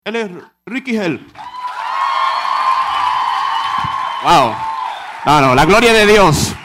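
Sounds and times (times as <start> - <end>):
speech: 0.1 - 1.6, 4.2 - 6.6
crowd cheering and applauding: 1.4 - 6.6.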